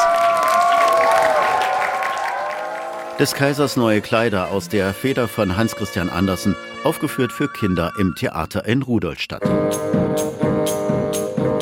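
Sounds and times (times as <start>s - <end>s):
theatre applause: 0.0s - 5.0s
speech: 3.2s - 11.3s.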